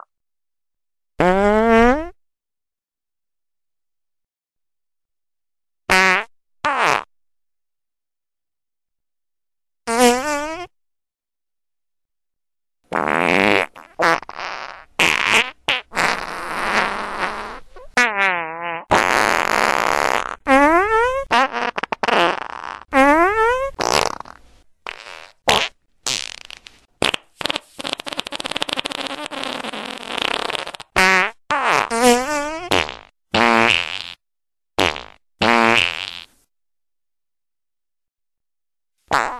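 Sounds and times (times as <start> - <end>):
loud farts: 1.2 - 2.2, 5.9 - 7.1, 9.9 - 10.8, 12.9 - 34.2, 34.8 - 36.3, 39.1 - 39.3.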